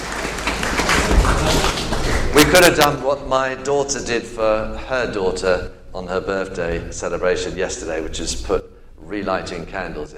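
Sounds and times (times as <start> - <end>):
audience applause: 0.0 - 2.6
speech: 2.5 - 10.1.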